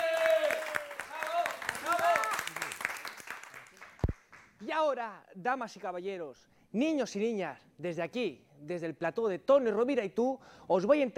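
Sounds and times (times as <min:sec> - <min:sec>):
audience applause: 0:00.0 - 0:04.4
speech: 0:04.8 - 0:11.1.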